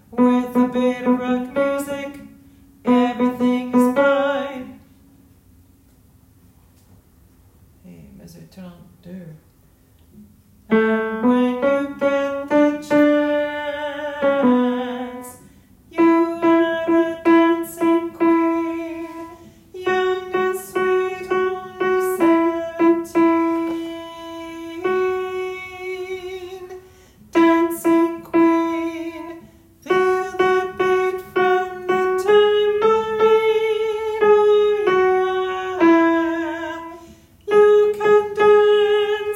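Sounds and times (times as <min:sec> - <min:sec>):
altos singing: 0:00.1 - 0:04.8, 0:10.7 - 0:39.3.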